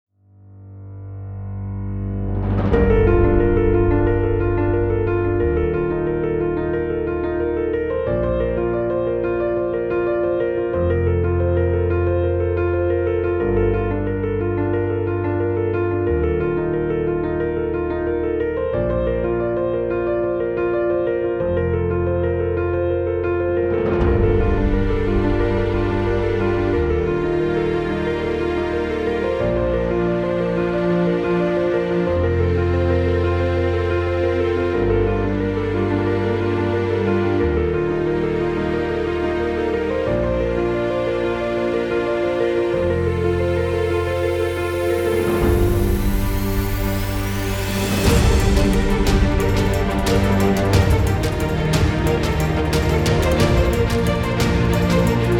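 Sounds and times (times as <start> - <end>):
piano: 0.2 - 55.3.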